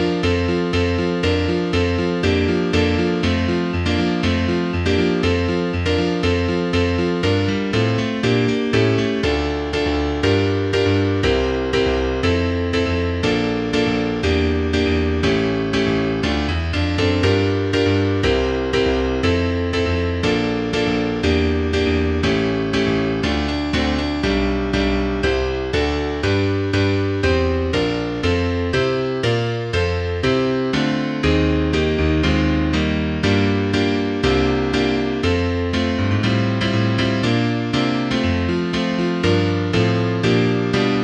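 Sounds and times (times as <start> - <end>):
piano piece: 0.0 - 41.0.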